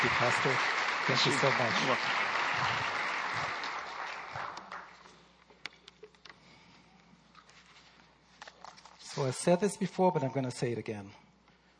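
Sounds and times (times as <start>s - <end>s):
speech: 0.0s - 3.5s, 9.2s - 11.2s
church congregation clapping as a speaker is welcomed to the pulpit: 0.0s - 5.2s.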